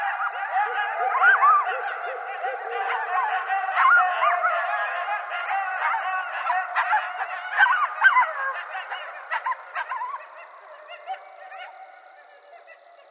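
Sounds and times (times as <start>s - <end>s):
laughter: 0.0s - 10.4s
coyotes yipping and howling: 0.0s - 13.0s.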